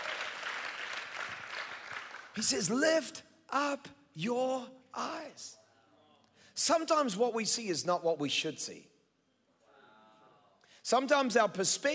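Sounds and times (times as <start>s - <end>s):
audience clapping hands: 0.0s - 2.5s
speech: 2.4s - 5.6s, 6.6s - 8.9s, 10.8s - 11.9s.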